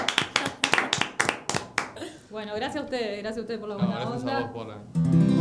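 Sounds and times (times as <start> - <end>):
applause: 0.0 - 2.1
speech: 2.4 - 5.3.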